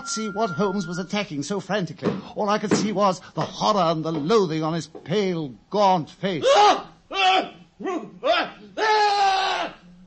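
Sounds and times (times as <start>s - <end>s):
speech: 0.0s - 8.5s
horrible scream: 8.8s - 9.9s.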